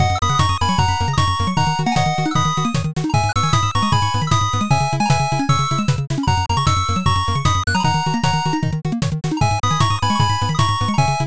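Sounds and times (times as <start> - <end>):
driving background music: 0.0 - 11.2.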